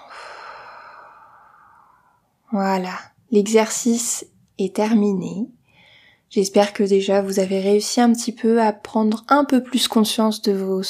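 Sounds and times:
deep breath in and out during a guided mindfulness exercise: 0:00.0 - 0:02.4, 0:05.6 - 0:06.3
speech: 0:02.5 - 0:05.6, 0:06.3 - 0:10.8.

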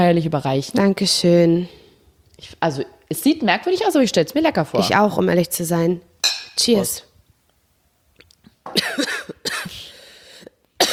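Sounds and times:
speech: 0:00.0 - 0:01.8, 0:02.4 - 0:07.1
coughing: 0:08.6 - 0:10.9.

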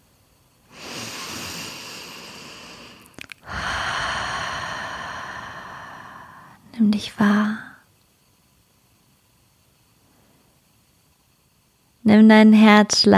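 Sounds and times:
deep breathing: 0:00.7 - 0:06.7
speech: 0:06.8 - 0:07.6, 0:12.1 - 0:13.1.

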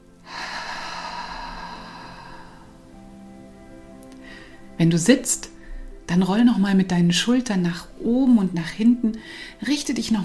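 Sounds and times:
deep breath in through the nose and out through the mouth during guided relaxation: 0:00.2 - 0:02.8, 0:04.2 - 0:04.8, 0:09.2 - 0:09.6
speech: 0:04.8 - 0:05.5, 0:06.1 - 0:10.2.

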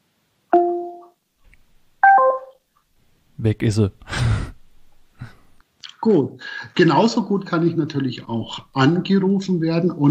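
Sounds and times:
phone call hang-up chimes played through a smart speaker: 0:00.6 - 0:01.1, 0:02.0 - 0:02.5
speech: 0:03.4 - 0:04.3, 0:06.0 - 0:10.0.

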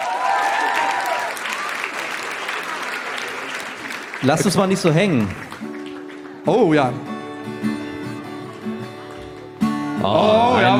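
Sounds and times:
cheering and whistling: 0:00.0 - 0:03.9
audience applause: 0:00.0 - 0:10.7
speech: 0:04.2 - 0:05.5, 0:06.4 - 0:07.8, 0:10.0 - 0:10.7.

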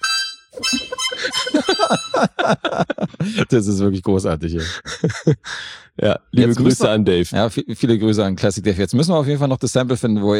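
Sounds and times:
reedy party horn slowly losing air: 0:00.0 - 0:02.4
laughter: 0:00.6 - 0:07.0
speech: 0:01.9 - 0:10.3.

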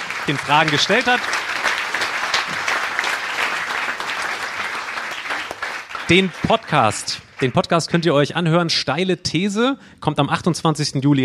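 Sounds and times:
audience applause: 0:00.0 - 0:08.0
speech: 0:00.3 - 0:01.4, 0:06.1 - 0:11.2.

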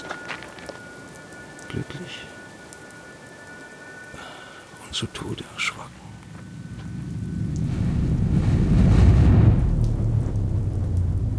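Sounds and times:
steady rain: 0:00.0 - 0:11.3
speech: 0:01.7 - 0:02.4, 0:04.9 - 0:06.1
thunder rumbling: 0:06.2 - 0:11.3.

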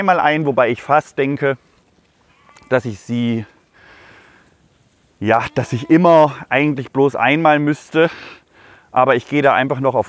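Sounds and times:
speech: 0:00.0 - 0:01.7, 0:02.7 - 0:03.5, 0:05.2 - 0:10.0
lambs bleating on a farm: 0:02.2 - 0:03.1, 0:05.2 - 0:06.4.

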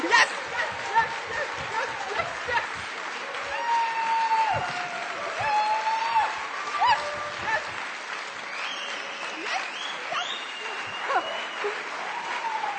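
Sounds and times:
audience cheering and applause: 0:00.0 - 0:12.7.

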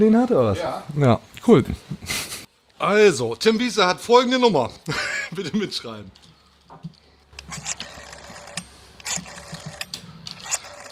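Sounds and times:
speech: 0:00.0 - 0:07.8
green rotary telephone dialing: 0:07.4 - 0:10.9.

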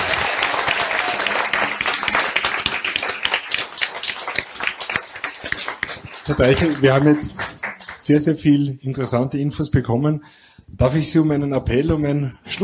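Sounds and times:
audience applause: 0:00.0 - 0:08.4
speech: 0:06.3 - 0:12.6.

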